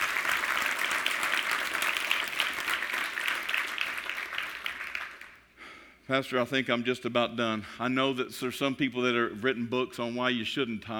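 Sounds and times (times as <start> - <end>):
audience applauding: 0.0 - 5.4
speech: 6.1 - 10.9.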